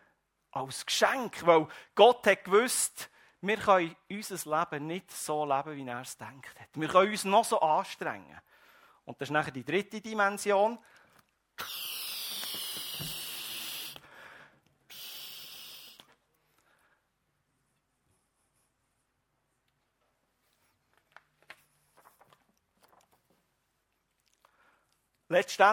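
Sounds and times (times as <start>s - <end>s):
speech: 0.6s - 11.0s, 11.6s - 12.0s, 25.3s - 25.7s
faint rubbery squeaks: 11.6s - 14.0s
balloon being inflated by mouth: 11.6s - 16.1s.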